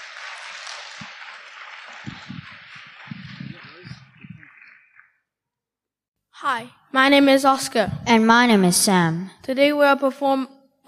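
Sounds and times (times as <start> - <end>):
audience applause: 0.0 - 5.1
speech: 6.4 - 10.8.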